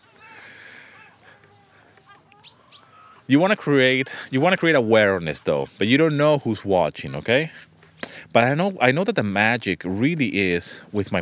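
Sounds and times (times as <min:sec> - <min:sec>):
seagulls calling overhead: 0:00.0 - 0:08.2
speech: 0:03.3 - 0:07.7, 0:08.3 - 0:11.2.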